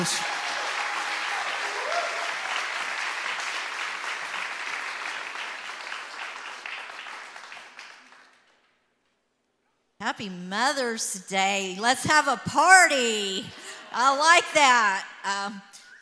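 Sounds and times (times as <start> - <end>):
speech: 0.0 - 0.3, 10.1 - 15.8
audience applause at a Mother's Day church service: 0.0 - 8.6.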